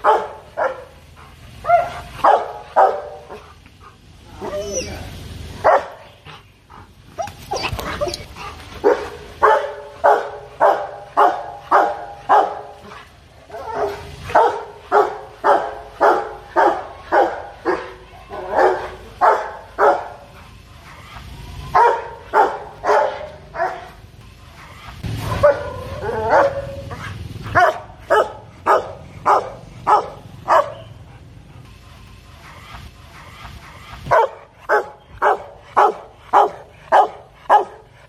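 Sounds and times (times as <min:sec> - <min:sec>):
dog barking fiercely: 0:00.0 - 0:00.9, 0:01.6 - 0:03.4, 0:05.6 - 0:06.0, 0:08.8 - 0:12.9, 0:13.6 - 0:20.2, 0:21.8 - 0:23.9, 0:25.4 - 0:31.0, 0:34.1 - 0:38.0
dog whining: 0:04.4 - 0:05.1, 0:07.2 - 0:08.3.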